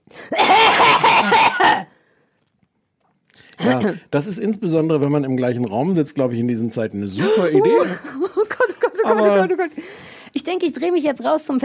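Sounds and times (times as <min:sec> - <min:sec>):
loud deliberate coughing: 0:00.3 - 0:01.9
speech: 0:03.6 - 0:08.2, 0:09.0 - 0:11.6
laughter: 0:07.2 - 0:09.7.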